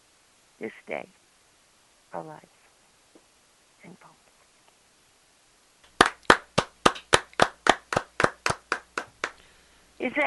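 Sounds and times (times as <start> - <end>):
speech: 0.6 - 1.2, 2.1 - 2.6, 10.0 - 10.2
two hands clapping alone: 5.8 - 9.4.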